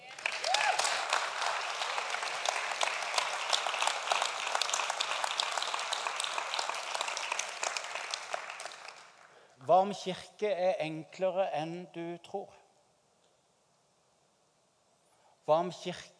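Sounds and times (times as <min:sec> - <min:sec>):
audience applause: 0:00.0 - 0:09.4
speech: 0:09.7 - 0:12.6, 0:15.5 - 0:16.1.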